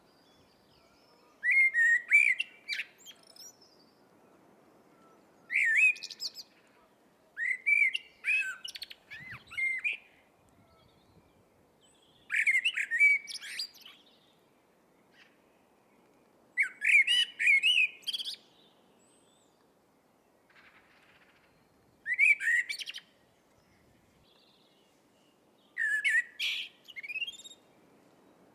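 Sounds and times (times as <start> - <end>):
Eurasian blackbird singing: 0.2 - 3.8, 5.0 - 6.6, 7.4 - 14.3, 16.6 - 19.6, 21.4 - 24.8, 25.6 - 27.7.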